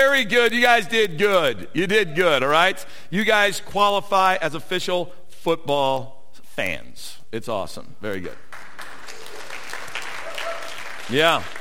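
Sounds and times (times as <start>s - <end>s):
speech: 0.0s - 8.7s, 11.1s - 11.5s
audience applause: 8.5s - 11.5s.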